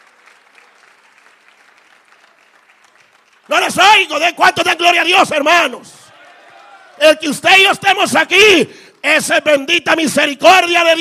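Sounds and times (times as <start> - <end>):
audience clapping: 0.0 - 4.9
speech: 3.5 - 6.0, 7.0 - 10.9.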